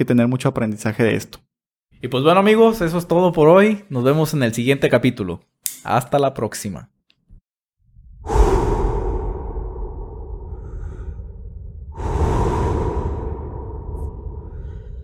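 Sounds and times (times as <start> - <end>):
speech: 0.0 - 6.9
long deep breaths: 8.1 - 15.0.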